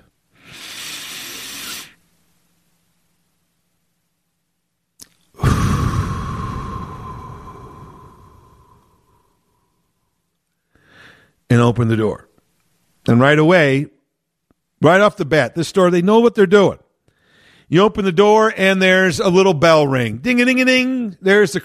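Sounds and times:
hissing inhale of 4-7-8 breathing exercise: 0.3s - 2.0s, 5.4s - 9.6s, 10.7s - 11.4s, 17.1s - 17.7s
long breathy exhale of 4-7-8 breathing exercise: 0.3s - 2.0s, 5.4s - 9.7s, 10.7s - 11.3s
speech: 11.5s - 12.3s, 13.0s - 14.0s, 14.8s - 16.8s, 17.7s - 21.6s.

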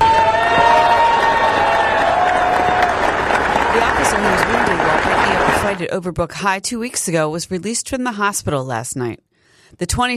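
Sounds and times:
Philadelphia police officers cheering and whooping: 0.0s - 5.8s
Philadelphia police officers clapping: 0.0s - 5.9s
speech: 5.7s - 10.1s.

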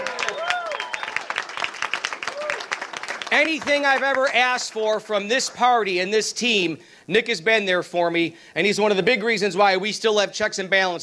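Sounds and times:
round of applause: 0.0s - 5.0s
speech: 3.4s - 11.0s.

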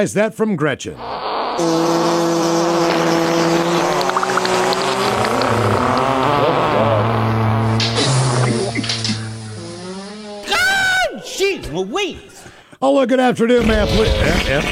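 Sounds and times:
speech: 0.0s - 2.3s, 11.8s - 14.7s
long loud wet fart sound: 1.0s - 10.4s.

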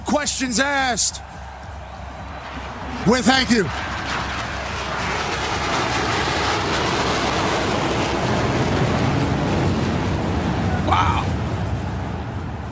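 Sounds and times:
speech: 0.2s - 1.4s, 3.0s - 3.9s
B-2 stealth bomber flying over the Rose Bowl: 0.6s - 12.7s.

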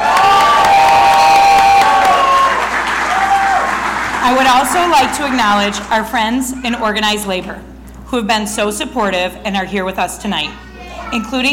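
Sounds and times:
audience applause: 0.0s - 5.9s
speech: 4.3s - 11.5s.

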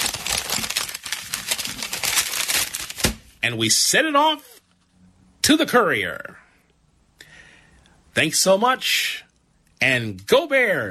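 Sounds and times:
paper letter crinkling as it is folded: 0.0s - 3.4s
speech: 3.4s - 4.5s, 5.5s - 6.4s, 8.2s - 9.2s, 9.8s - 10.8s.

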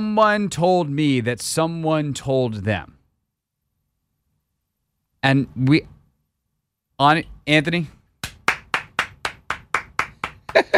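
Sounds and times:
speech: 0.0s - 3.0s, 5.2s - 5.9s, 7.0s - 8.0s
hands clapping: 8.2s - 10.7s.

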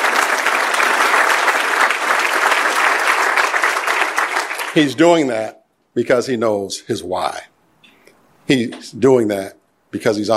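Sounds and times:
audience applause: 0.0s - 5.0s
speech: 4.8s - 7.5s, 8.5s - 10.3s.

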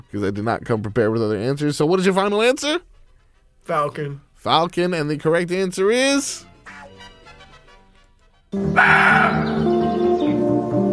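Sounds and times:
speech: 0.1s - 2.9s, 3.6s - 6.8s, 8.5s - 9.7s
roe deer call: 8.6s - 10.3s.

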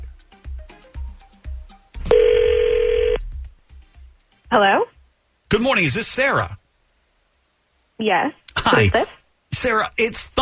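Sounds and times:
telephone call dialing tones: 2.1s - 3.2s
speech: 4.5s - 4.9s, 5.5s - 6.6s, 8.0s - 10.4s.

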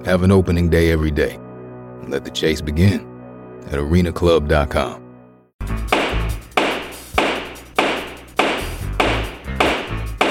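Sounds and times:
speech: 0.0s - 1.4s, 2.0s - 5.0s
gavel pounding: 5.9s - 10.2s.

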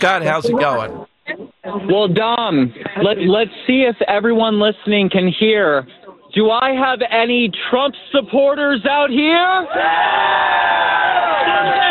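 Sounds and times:
speech: 0.0s - 11.8s
crowd cheering and whooping: 9.7s - 11.8s.

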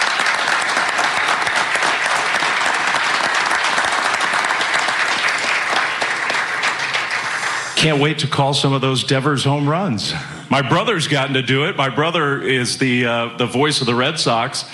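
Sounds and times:
applause at a San Francisco Giants press conference: 0.0s - 8.0s
speech: 7.8s - 14.7s.

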